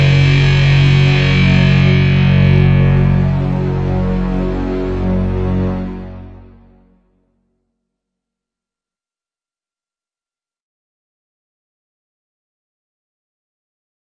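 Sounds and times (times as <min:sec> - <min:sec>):
instrumental music: 0:00.0 - 0:07.4.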